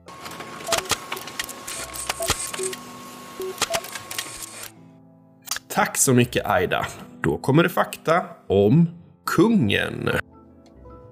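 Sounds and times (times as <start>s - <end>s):
printer printing out a page: 0.0s - 4.7s
speech: 5.8s - 10.3s.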